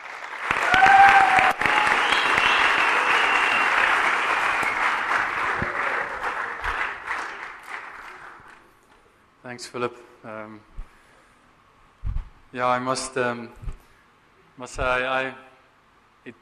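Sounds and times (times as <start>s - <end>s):
audience applause at an evening church service welcoming a speaker: 0.0s - 8.7s
speech: 9.6s - 10.8s, 12.5s - 13.7s, 14.6s - 15.5s.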